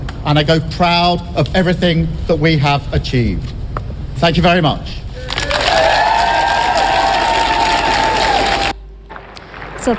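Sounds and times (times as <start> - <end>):
speech: 0.2 - 3.6, 4.2 - 5.0
supporters cheering and clapping at Downing Street: 5.2 - 9.9.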